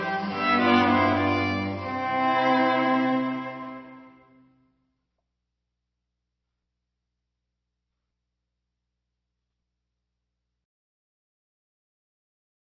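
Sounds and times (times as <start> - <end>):
string quartet playing: 0.0 - 4.5.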